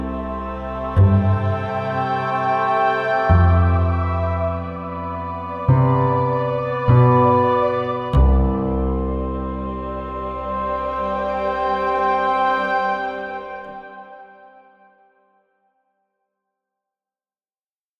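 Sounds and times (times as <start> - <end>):
orchestra loop: 0.0 - 14.1.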